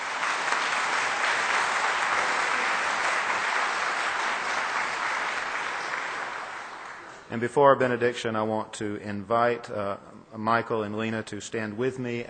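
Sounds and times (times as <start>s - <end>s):
steady crowd applause: 0.0s - 7.3s
speech: 7.3s - 12.2s.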